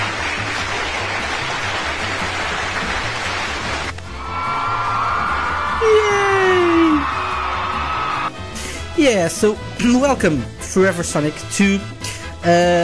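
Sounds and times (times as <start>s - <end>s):
applause and cheering: 0.0s - 8.8s
speech: 9.0s - 12.8s.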